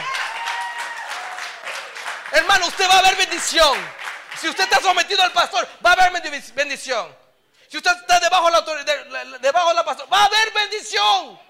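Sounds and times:
audience applause: 0:00.0 - 0:05.1
speech: 0:02.4 - 0:11.4.

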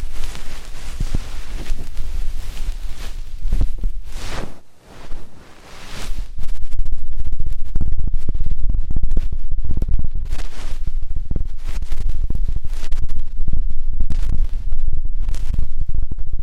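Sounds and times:
ear cleaning scraping and rubbing close to the mic: 0:00.0 - 0:06.4
low thumps and rustles: 0:00.0 - 0:16.4.

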